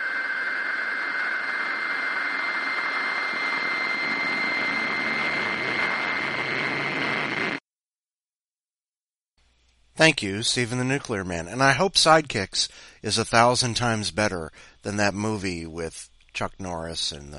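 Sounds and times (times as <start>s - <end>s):
radio static: 0.0s - 7.6s
speech: 10.0s - 17.3s.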